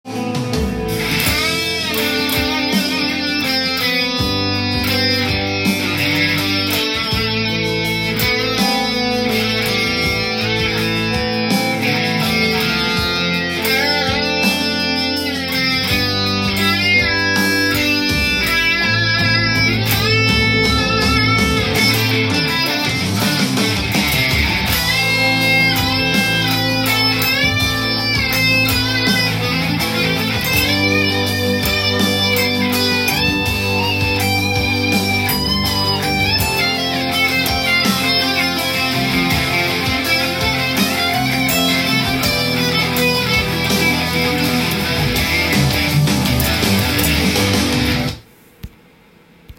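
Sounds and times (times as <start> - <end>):
A minor original solo guitar: 0.0 - 48.2.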